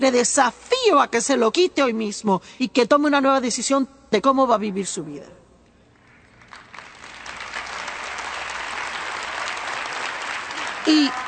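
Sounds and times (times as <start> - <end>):
speech: 0.0 - 5.4
audience applause: 6.0 - 11.2.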